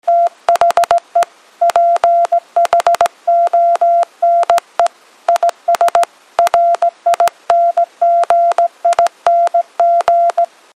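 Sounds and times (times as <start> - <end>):
fast morse code beeps: 0.0 - 10.5.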